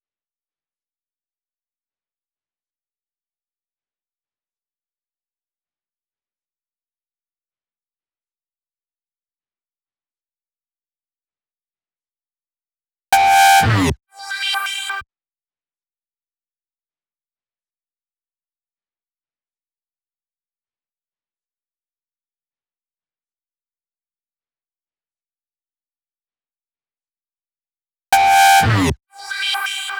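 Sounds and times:
synth effect fill at 128 BPM: 0:13.2 - 0:14.0, 0:28.2 - 0:29.9.

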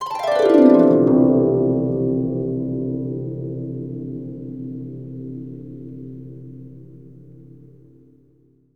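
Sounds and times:
harp: 0:00.0 - 0:07.0.

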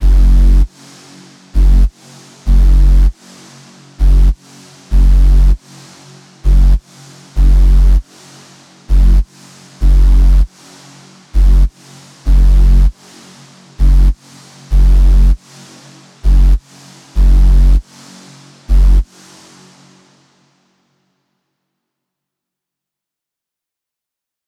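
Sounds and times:
Reese sub bass: 0:00.0 - 0:00.7, 0:01.5 - 0:01.9, 0:02.5 - 0:03.2, 0:04.0 - 0:05.6, 0:06.4 - 0:08.0, 0:08.9 - 0:10.5, 0:11.3 - 0:12.9, 0:13.8 - 0:15.4, 0:16.2 - 0:17.8, 0:18.6 - 0:19.1.

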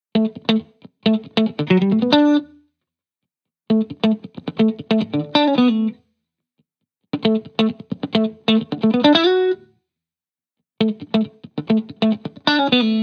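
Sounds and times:
70s guitar: 0:00.1 - 0:02.7, 0:03.7 - 0:06.1, 0:07.1 - 0:09.8, 0:10.8 - 0:13.0.

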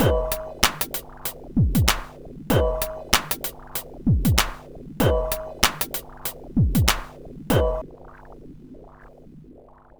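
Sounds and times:
breakbeat drums: 0:00.0 - 0:07.8.

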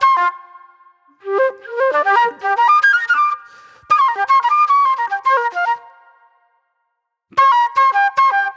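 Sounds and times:
raw funk flute: 0:01.2 - 0:05.9, 0:07.3 - 0:08.5.

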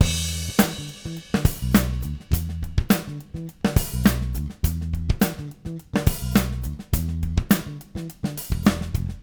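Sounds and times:
drums: 0:00.0 - 0:09.2.

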